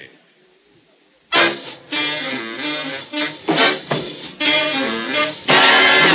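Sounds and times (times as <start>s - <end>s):
jazz orchestra playing live: 1.3s - 6.1s.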